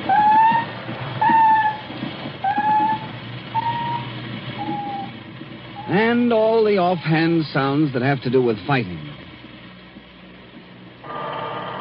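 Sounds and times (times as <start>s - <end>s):
underwater sound detector squeals and howls: 0.0s - 6.6s, 11.0s - 11.7s
underwater sound detector hums: 0.0s - 11.7s
speech: 6.2s - 9.1s.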